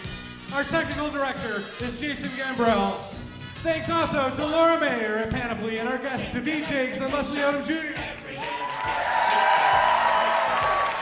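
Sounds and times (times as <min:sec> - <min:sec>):
speech: 0:00.5 - 0:08.2
live audience cheering and whooping: 0:08.3 - 0:10.9.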